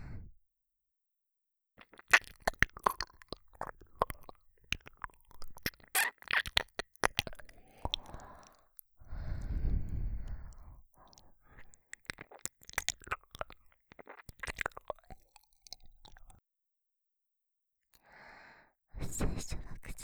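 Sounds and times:
ear licking: 0:01.8 - 0:16.4.

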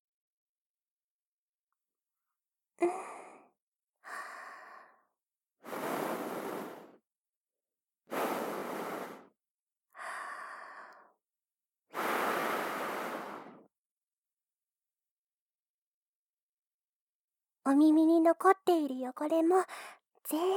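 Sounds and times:
speech: 0:02.8 - 0:03.1, 0:17.7 - 0:20.5
soft breaths blown: 0:02.8 - 0:05.0, 0:05.6 - 0:07.0, 0:08.1 - 0:09.3, 0:10.0 - 0:11.1, 0:11.9 - 0:13.7.

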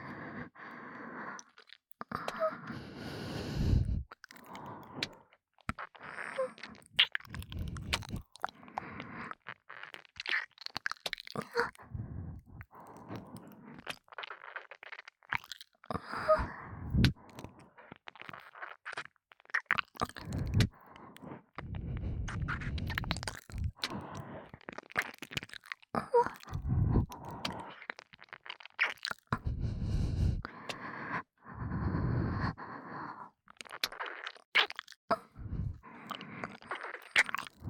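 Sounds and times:
ASMR ear licking: 0:01.3 - 0:15.6, 0:16.4 - 0:32.8, 0:33.5 - 0:37.6
breathy ASMR breathing in the right ear: 0:02.3 - 0:05.2, 0:11.8 - 0:13.8, 0:16.0 - 0:17.7, 0:20.2 - 0:24.6, 0:26.5 - 0:27.8, 0:29.3 - 0:33.4, 0:35.1 - 0:36.7.

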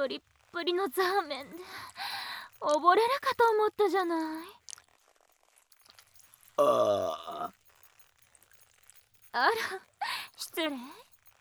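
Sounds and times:
speech: 0:00.0 - 0:04.6, 0:06.6 - 0:07.6, 0:09.3 - 0:11.0
person burping: 0:06.6 - 0:07.6.

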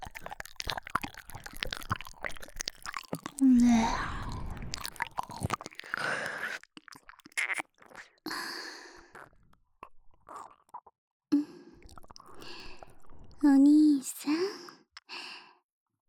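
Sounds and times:
ear licking: 0:00.0 - 0:08.1, 0:11.8 - 0:13.5
oral sex sounds: 0:00.0 - 0:14.6
ghost masturbating: 0:03.1 - 0:06.6, 0:07.3 - 0:08.5.

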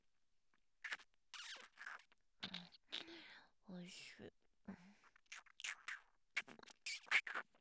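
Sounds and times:
kissing in an abandoned house: 0:00.9 - 0:03.1, 0:05.3 - 0:07.5.

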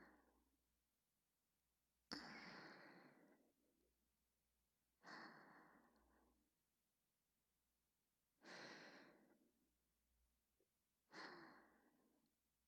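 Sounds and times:
whispered breathing: 0:02.1 - 0:03.5, 0:05.0 - 0:06.4, 0:08.4 - 0:09.5, 0:11.1 - 0:12.3.

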